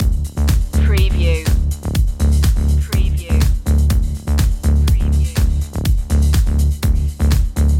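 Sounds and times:
trance music loop: 0.0s - 7.7s.

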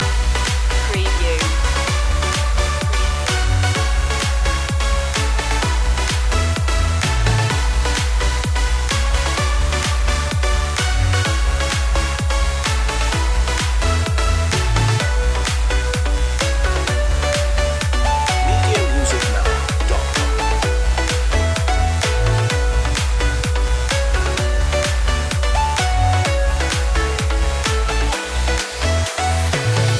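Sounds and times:
fitness dance music loop: 0.0s - 29.9s.

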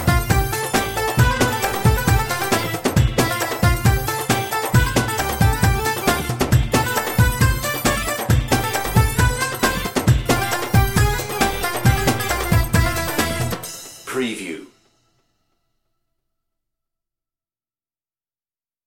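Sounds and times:
oriental dance party music: 0.0s - 14.6s.

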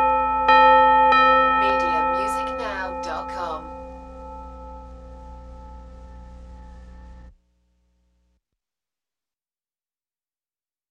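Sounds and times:
church bells tolling: 0.0s - 7.3s.

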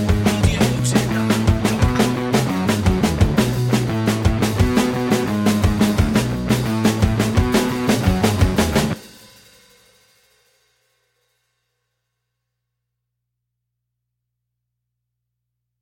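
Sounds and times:
punk pop underscore: 0.0s - 9.2s.

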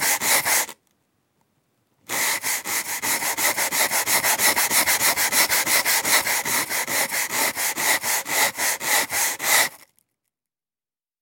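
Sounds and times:
brush scrubbing: 0.0s - 0.8s, 2.1s - 9.8s.

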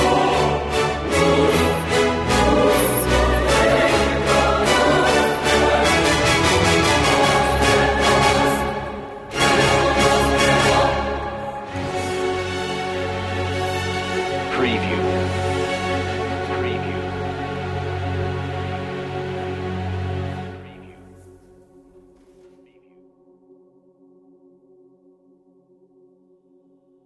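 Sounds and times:
choir: 0.0s - 21.1s
strings: 0.0s - 21.3s
brass: 0.0s - 22.4s.

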